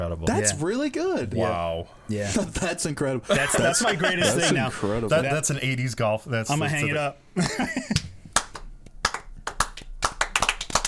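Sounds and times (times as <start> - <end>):
speech: 0.1 - 8.1
laughter: 6.7 - 8.0
golf clap sound effect: 7.9 - 10.8.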